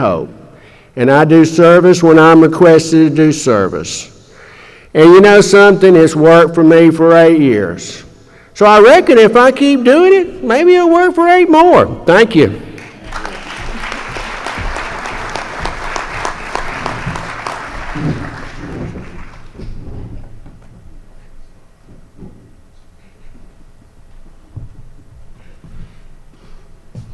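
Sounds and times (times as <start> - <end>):
speech: 0.0 - 0.4, 1.0 - 4.1, 4.9 - 8.0, 8.6 - 12.6
audience applause: 12.8 - 19.7.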